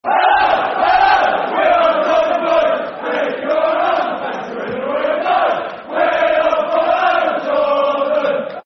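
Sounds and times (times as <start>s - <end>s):
football crowd chanting a soccer song: 0.0s - 8.6s.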